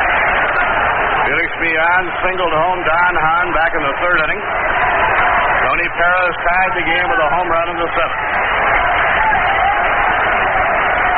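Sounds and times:
big crowd murmur at a baseball game between Cincinnati and New York: 0.0s - 11.1s
speech: 1.8s - 4.9s, 5.7s - 8.7s.

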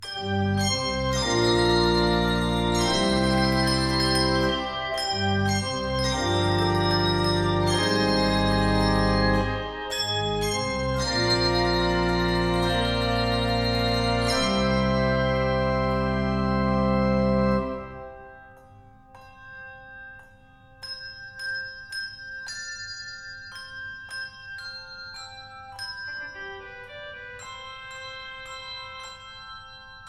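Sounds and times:
handbell: 0.0s - 15.4s, 18.2s - 30.0s
organ: 0.2s - 18.2s.

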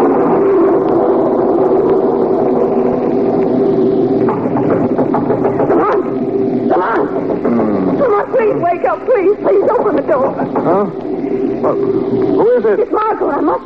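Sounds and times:
violent storm: 0.0s - 13.5s.

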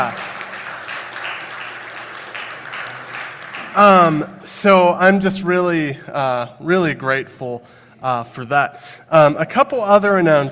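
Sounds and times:
speech: 0.0s - 0.2s, 3.7s - 10.5s
crowd applauding: 0.0s - 4.6s.

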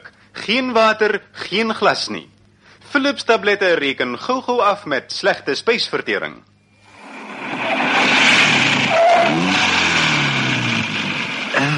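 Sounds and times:
speech: 0.5s - 2.3s, 2.9s - 6.5s
wind rushing past convertible car with hood down: 6.8s - 9.5s
convertible car engine accelerating: 6.8s - 11.7s.

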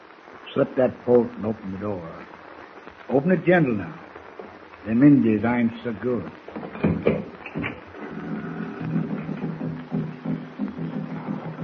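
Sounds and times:
speech: 0.5s - 2.3s, 3.1s - 4.0s, 4.8s - 6.4s
distant tom-tom drums beating: 6.3s - 11.6s.

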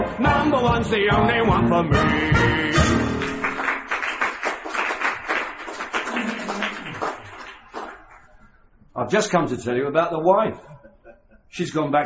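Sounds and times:
speech: 0.1s - 3.4s, 9.0s - 10.8s, 11.5s - 12.0s
audience clapping: 2.7s - 8.5s.

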